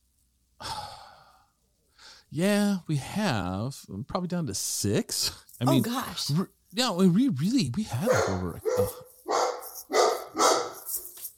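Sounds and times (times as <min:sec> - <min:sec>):
speech: 0:02.3 - 0:09.1
dog barking: 0:08.0 - 0:10.9.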